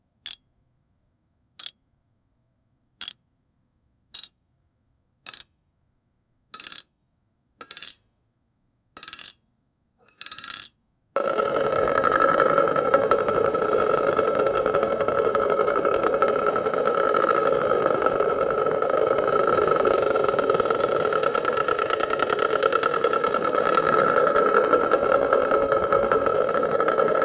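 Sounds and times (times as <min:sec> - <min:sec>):
rolling catherine wheel firework: 0:11.2 - 0:27.2.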